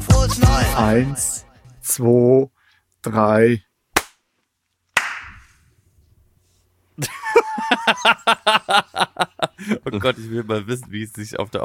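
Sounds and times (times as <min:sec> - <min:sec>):
speech: 0:00.4 - 0:03.7, 0:07.0 - 0:11.6
group clapping: 0:05.0 - 0:05.5
laughter: 0:07.0 - 0:10.2.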